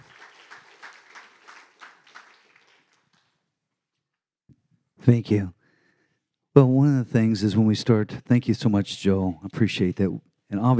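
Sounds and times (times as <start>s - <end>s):
audience applause: 0.0s - 3.3s
speech: 5.0s - 5.6s, 6.6s - 10.7s.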